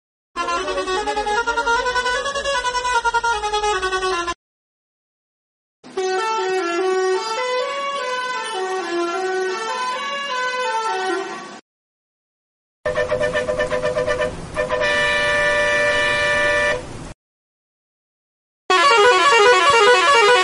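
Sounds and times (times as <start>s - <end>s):
bus horn: 0.4s - 4.4s, 5.9s - 11.6s, 12.9s - 17.1s, 18.7s - 20.4s.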